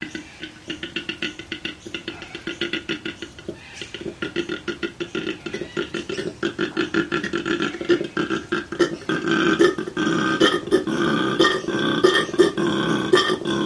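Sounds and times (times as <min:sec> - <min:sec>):
male koala bellowing: 0:00.0 - 0:13.6.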